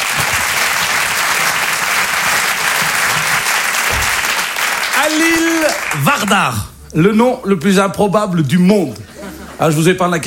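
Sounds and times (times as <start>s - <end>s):
audience applause for a comedian on stage: 0.0s - 6.4s
speech: 5.1s - 10.2s
laughter: 9.0s - 10.2s.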